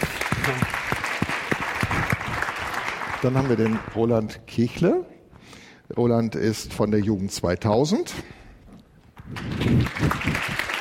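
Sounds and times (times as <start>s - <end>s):
audience applause: 0.0s - 4.0s, 9.4s - 10.8s
speech: 0.5s - 0.8s, 3.2s - 5.1s, 5.9s - 8.4s.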